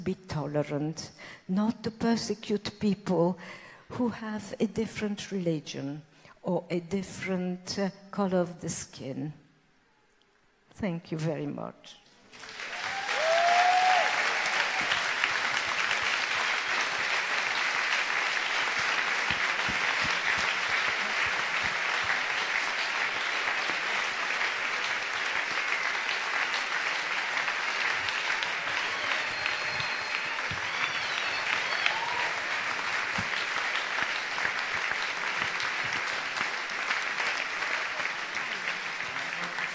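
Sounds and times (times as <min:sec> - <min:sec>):
speech: 0:00.0 - 0:09.4, 0:10.8 - 0:12.5
crowd clapping: 0:12.2 - 0:39.7.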